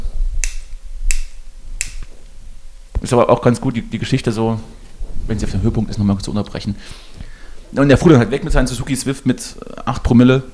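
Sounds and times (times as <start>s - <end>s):
empty lighter being flicked: 0.4s - 2.1s
speech: 3.0s - 10.5s.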